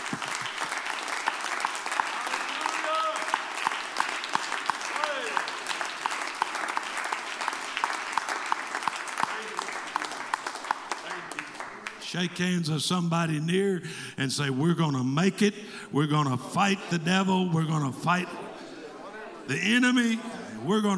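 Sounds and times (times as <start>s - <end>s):
audience clapping hands: 0.0s - 12.7s
speech: 12.1s - 18.4s, 19.5s - 20.9s.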